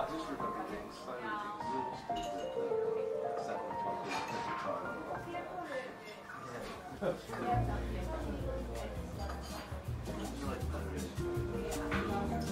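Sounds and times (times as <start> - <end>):
murmur of voices in a seaside cafe: 0.0 - 12.5
cups and glasses clinking: 2.2 - 2.6.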